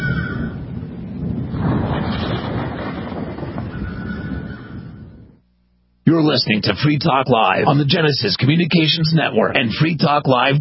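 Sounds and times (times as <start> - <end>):
storm wind: 0.0 - 5.5
speech: 6.1 - 10.5.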